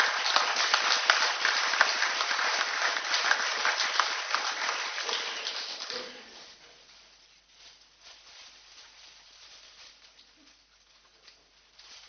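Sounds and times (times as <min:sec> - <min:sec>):
crowd applauding: 0:00.0 - 0:06.0.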